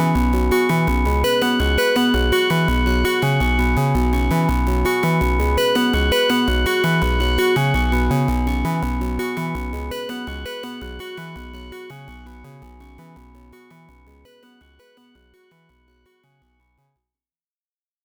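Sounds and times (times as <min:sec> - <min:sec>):
modular synthesizer: 0:00.0 - 0:14.3.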